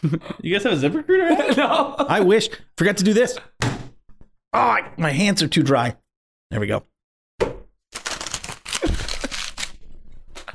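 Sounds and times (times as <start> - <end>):
laughter: 0.0 - 2.5
speech: 0.0 - 3.6, 4.5 - 6.9
paper crumpling: 8.0 - 10.5.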